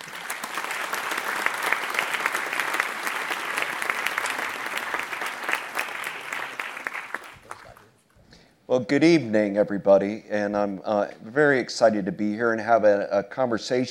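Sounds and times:
audience applause welcoming speakers: 0.0 - 8.1
speech: 8.7 - 13.8.

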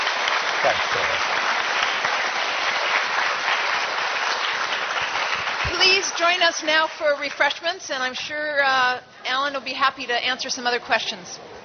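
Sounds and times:
audience applause: 0.0 - 7.6
speech: 0.6 - 1.4, 5.8 - 11.6.

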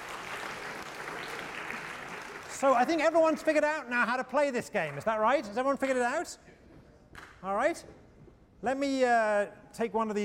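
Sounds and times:
audience clapping: 0.0 - 3.6, 4.7 - 5.4
speech: 2.6 - 6.6, 7.4 - 8.0, 8.6 - 10.2.

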